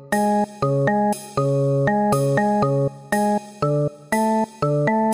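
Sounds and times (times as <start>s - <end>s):
breaktime music loop: 0.1s - 5.1s.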